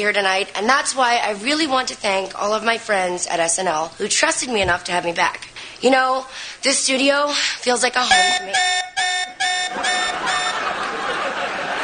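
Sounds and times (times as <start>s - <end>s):
speech: 0.0s - 9.1s
alarm going off: 8.1s - 10.8s
laughter: 9.7s - 11.8s.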